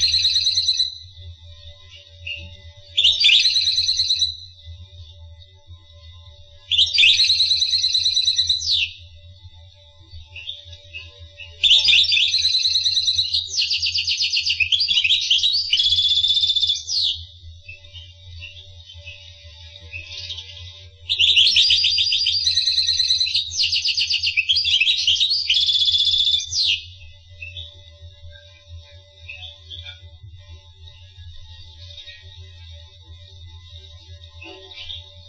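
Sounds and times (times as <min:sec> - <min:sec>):
finch singing: 0:00.0 - 0:01.0, 0:02.2 - 0:04.4, 0:06.7 - 0:09.0, 0:10.4 - 0:19.2, 0:19.9 - 0:27.7
steady low hum: 0:00.0 - 0:23.6, 0:25.6 - 0:35.2.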